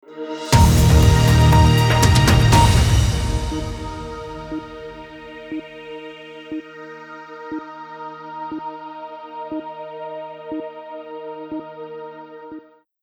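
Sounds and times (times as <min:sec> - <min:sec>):
news channel ident music with hold: 0:00.4 - 0:05.4.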